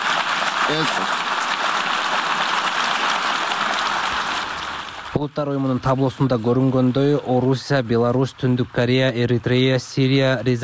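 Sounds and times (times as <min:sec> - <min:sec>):
diplomats in the UN General Assembly hall applauding after a vote: 0:00.0 - 0:05.7, 0:08.4 - 0:10.6
speech: 0:00.7 - 0:01.2, 0:05.2 - 0:10.6.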